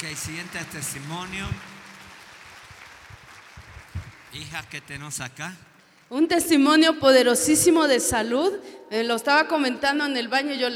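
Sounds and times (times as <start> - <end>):
speech: 0.0 - 1.8, 4.3 - 10.7
crowd applause: 0.0 - 5.5.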